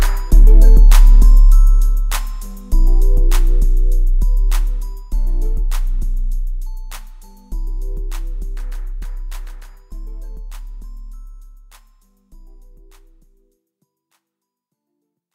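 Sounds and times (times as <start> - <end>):
35, 33 and 31 Hz low bass tones: 0.0 - 11.5.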